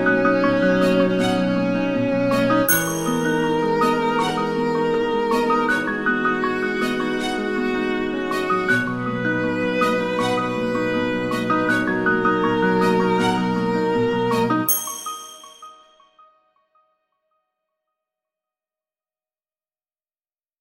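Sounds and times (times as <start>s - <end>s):
chill calm simple nostalgic Japanese music: 0.0s - 16.4s.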